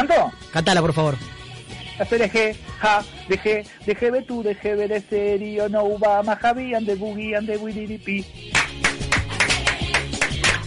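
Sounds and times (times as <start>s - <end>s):
speech: 0.0s - 1.4s, 2.0s - 8.5s
rhythmic clapping: 8.4s - 10.6s.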